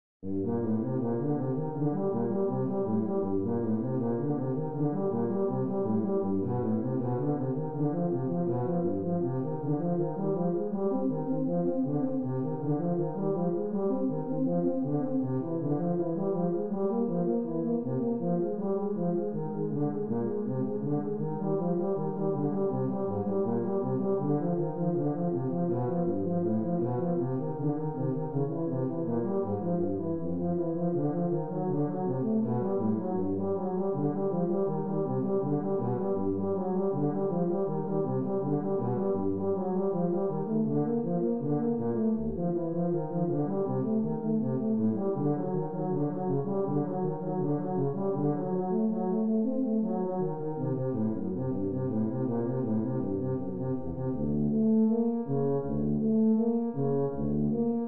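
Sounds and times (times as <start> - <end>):
tuba solo: 0.3 - 57.8.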